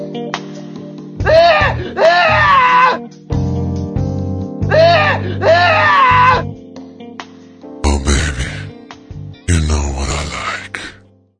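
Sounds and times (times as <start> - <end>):
piano: 0.0 - 11.3.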